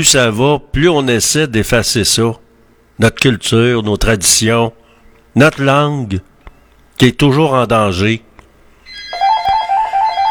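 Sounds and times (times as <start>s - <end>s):
speech: 0.0s - 2.4s, 3.0s - 6.3s, 7.0s - 8.3s
faint hum: 0.0s - 10.2s
electronic doorbell trilling: 8.9s - 10.2s.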